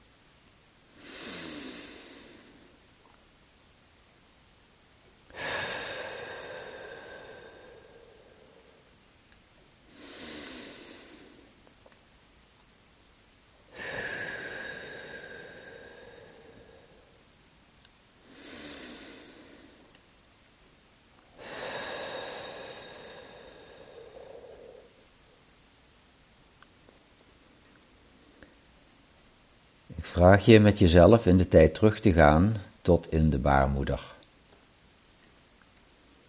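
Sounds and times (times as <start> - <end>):
deep breaths in through the nose, out through the mouth: 0.9 - 2.8, 5.3 - 9.0, 9.8 - 11.7, 13.7 - 17.4, 18.2 - 20.0, 21.3 - 25.4
speech: 30.1 - 34.2.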